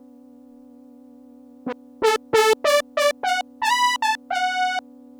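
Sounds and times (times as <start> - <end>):
GR-700 guitar synthesizer failure: 2.0 - 4.8.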